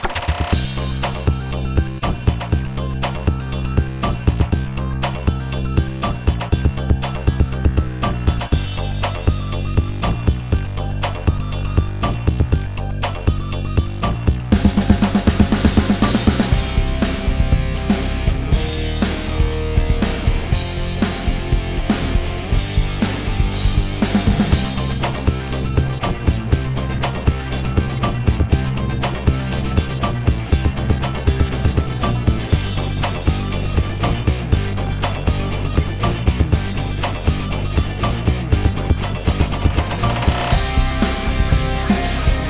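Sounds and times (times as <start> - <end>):
instrumental music: 0.2 - 42.4.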